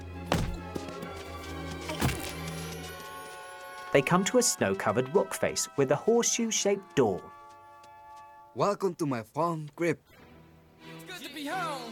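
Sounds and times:
dull thumps of someone being butted and kicked along: 0.2 - 2.5
speech: 3.9 - 7.3, 8.6 - 10.1.

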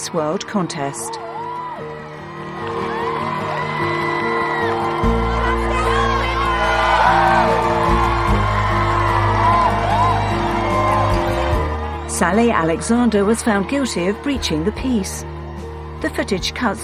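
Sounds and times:
speech: 0.1 - 1.9, 12.2 - 15.4, 16.0 - 16.8
group of women cheering outside Bow Street Magistrates Court: 1.2 - 15.7.

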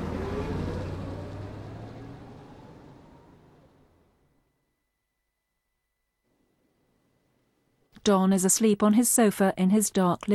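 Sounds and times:
taxi cab engine pulling away: 0.0 - 4.4
speech: 8.0 - 10.3.

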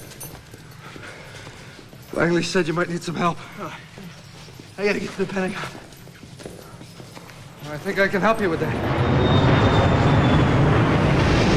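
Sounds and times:
speech: 2.1 - 4.0, 4.8 - 5.8, 7.7 - 9.2
stealth bomber taking off: 8.2 - 11.5
high whine: 8.3 - 11.5.

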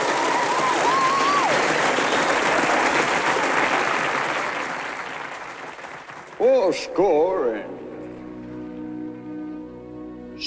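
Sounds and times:
audience applause for a performer at the front of a stage: 0.0 - 6.8
speech: 6.4 - 7.8.

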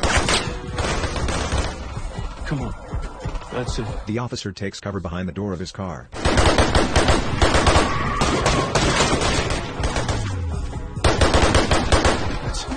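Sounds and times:
rapid gunfire: 0.0 - 1.9, 6.2 - 10.4, 11.0 - 12.6
speech: 2.5 - 2.9, 3.6 - 8.0.

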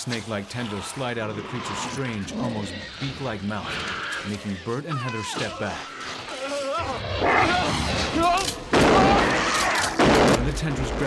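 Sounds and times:
speech: 0.0 - 6.2, 6.8 - 9.1, 10.5 - 11.0
repeated gunfire: 7.8 - 11.0.

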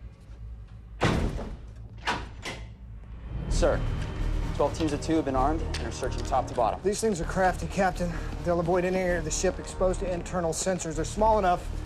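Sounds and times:
steady low hum: 0.0 - 11.8
door shutting with heavy thud: 1.0 - 2.8
speech: 3.6 - 4.0, 4.6 - 11.8.

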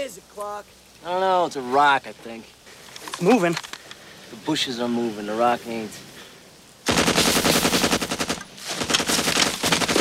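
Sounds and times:
speech: 0.2 - 2.6, 3.2 - 3.7, 4.3 - 6.1
machine-gun fire from soldiers shooting at bushes: 6.9 - 10.0.

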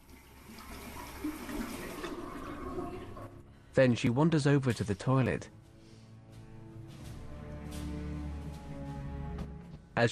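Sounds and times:
water running from a tap in a bathroom: 0.0 - 3.4
speech: 3.8 - 5.6.

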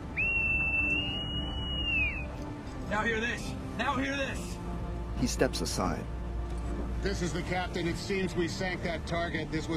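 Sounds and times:
shrill whistle blast: 0.1 - 2.3
speech: 2.9 - 4.5, 5.2 - 6.2, 7.0 - 9.7.

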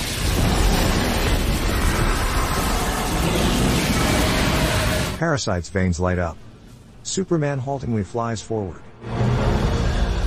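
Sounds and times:
reactor crackling with electricity: 0.0 - 5.6
speech: 5.2 - 6.5, 7.1 - 9.3.

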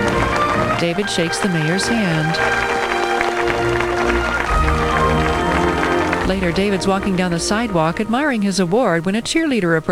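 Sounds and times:
vigorous hand clapping: 0.0 - 7.7
speech: 0.8 - 4.4, 6.3 - 9.9.

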